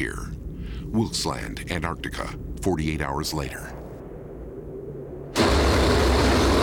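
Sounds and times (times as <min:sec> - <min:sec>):
speech: 0:00.0 - 0:03.8
tracked snowcat churning through powder snow in Antarctica: 0:05.4 - 0:06.6.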